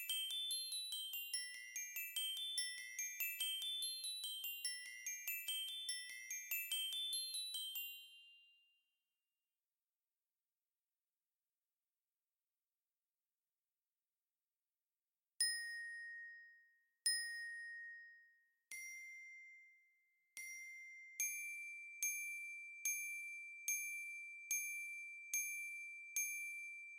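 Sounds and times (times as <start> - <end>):
glockenspiel: 0.0 - 9.0, 15.4 - 26.9.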